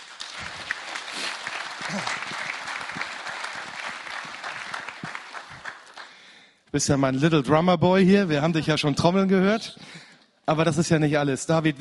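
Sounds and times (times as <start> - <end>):
audience applause: 0.0 - 6.4
speech: 1.9 - 2.3, 6.8 - 11.7.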